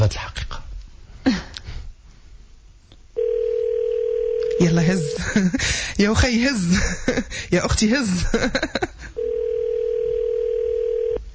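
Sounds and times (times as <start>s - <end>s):
speech: 0.1s - 0.4s, 4.6s - 8.9s
telephone dial tone as a call is placed: 3.2s - 4.6s, 9.2s - 11.2s.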